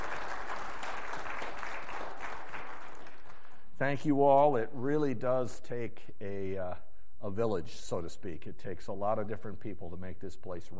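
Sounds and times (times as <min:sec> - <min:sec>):
audience applause: 0:00.0 - 0:03.5
speech: 0:03.8 - 0:10.7.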